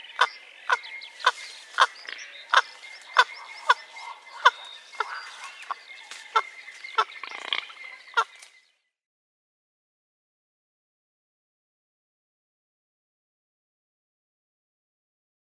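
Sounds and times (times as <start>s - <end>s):
Great Egret flight calls: 0.0s - 8.4s.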